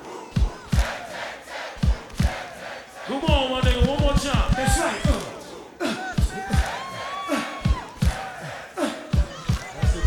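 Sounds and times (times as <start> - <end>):
crowd chanting: 0.0 - 10.0
heavy claps or stomps: 0.4 - 1.0, 1.8 - 2.4, 3.3 - 5.4, 6.2 - 6.9, 7.7 - 8.3, 9.2 - 10.0
speech: 3.1 - 5.1.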